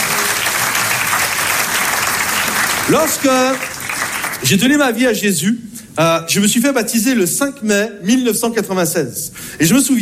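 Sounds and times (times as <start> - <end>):
audience applauding loudly: 0.0 - 4.8
speech: 2.9 - 3.7, 4.4 - 10.0.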